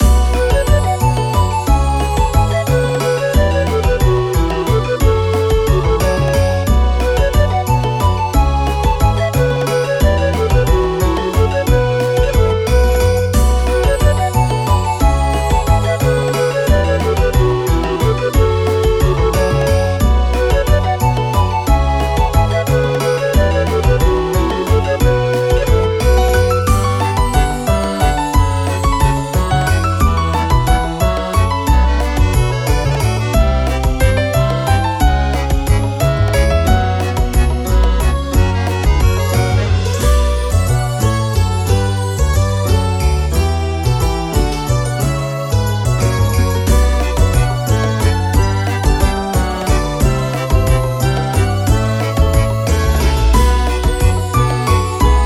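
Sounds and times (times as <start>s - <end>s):
music loop: 0.0s - 43.0s, 43.8s - 55.2s.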